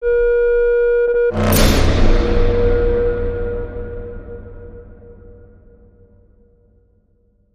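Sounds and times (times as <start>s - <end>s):
negative feedback sound: 1.1s - 5.4s
horror hit: 1.2s - 6.6s.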